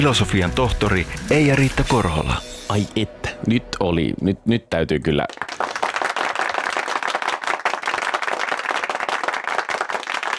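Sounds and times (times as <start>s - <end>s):
speech: 0.0s - 5.6s
audience clapping: 5.2s - 10.3s.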